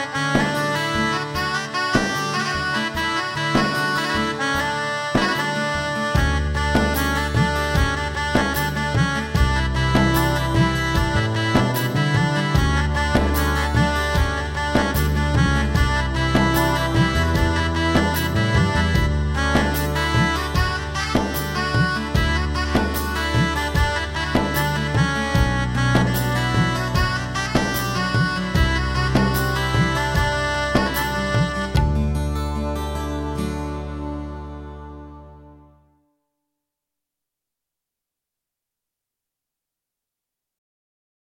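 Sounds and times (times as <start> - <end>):
shehnai playing: 0.0 - 35.7.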